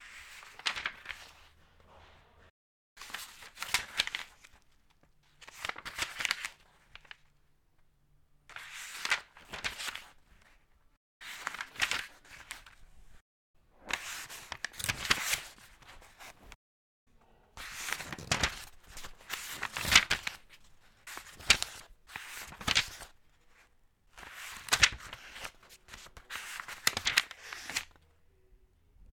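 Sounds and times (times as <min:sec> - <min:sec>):
book pages turning: 0:00.1 - 0:07.3, 0:08.6 - 0:10.6, 0:11.2 - 0:12.8, 0:13.9 - 0:16.6, 0:17.6 - 0:23.2, 0:24.2 - 0:28.0.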